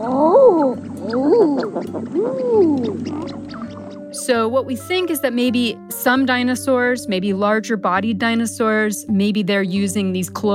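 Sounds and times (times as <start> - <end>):
low rumbling background: 0.0 - 9.2
eider duck crooning calls: 0.8 - 4.1
speech: 4.3 - 10.5.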